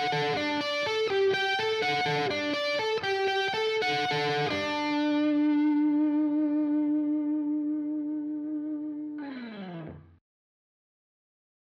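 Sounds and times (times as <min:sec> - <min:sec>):
lead melody: 0:00.0 - 0:09.2.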